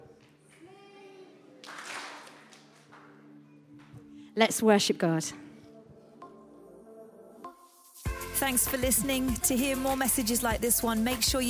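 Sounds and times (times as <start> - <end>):
crowd clapping along: 1.6 - 3.2
speech: 4.4 - 5.4, 8.4 - 11.4.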